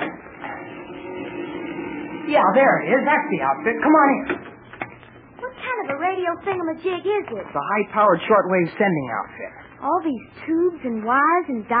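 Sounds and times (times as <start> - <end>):
heavy door scraping open: 0.0 - 4.5
speech: 2.3 - 4.5, 6.2 - 11.7.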